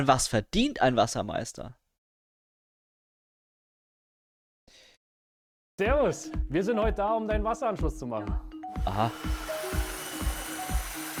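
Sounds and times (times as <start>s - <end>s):
speech: 0.0s - 1.8s, 5.8s - 9.5s
core drill grinding through a wall: 8.8s - 11.1s.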